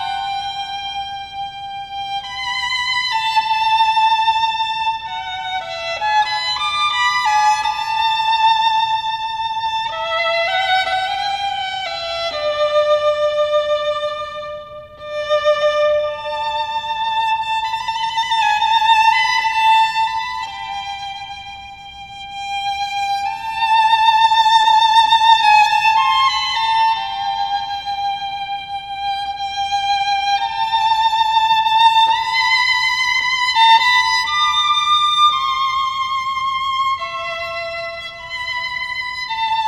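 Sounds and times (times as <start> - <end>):
solo violin piece: 0.0 - 39.6.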